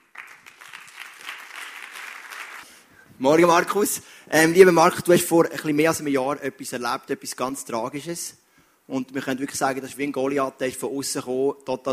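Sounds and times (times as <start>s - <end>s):
audience applause: 0.0s - 2.6s
speech: 3.2s - 11.9s.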